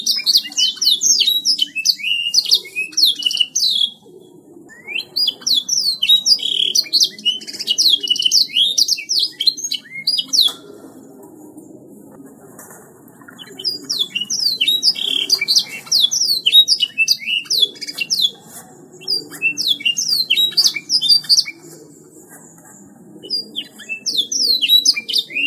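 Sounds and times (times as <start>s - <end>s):
songbird singing fast medley of high chirps, trills and whistled sweeps: 0.0s - 11.8s, 13.1s - 25.4s.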